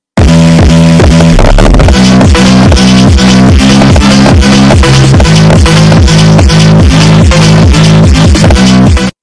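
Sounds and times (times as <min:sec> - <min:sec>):
fast phonk music: 0:00.2 - 0:09.2.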